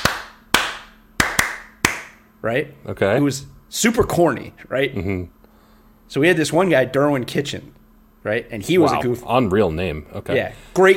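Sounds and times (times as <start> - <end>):
rhythmic hand clapping: 0.0 - 2.2
speech: 2.4 - 5.4, 6.1 - 10.9.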